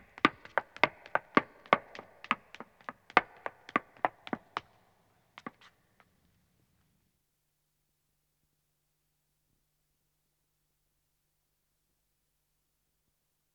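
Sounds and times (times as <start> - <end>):
woman running on stone: 0.0 - 4.8, 5.4 - 5.7.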